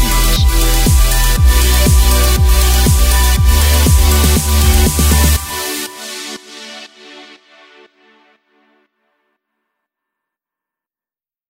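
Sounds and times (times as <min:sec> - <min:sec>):
modern pop background intro: 0:00.0 - 0:07.6.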